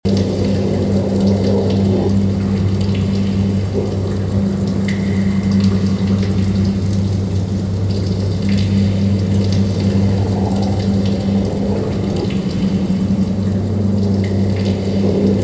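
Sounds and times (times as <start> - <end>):
cave background sound: 0.0 - 15.4.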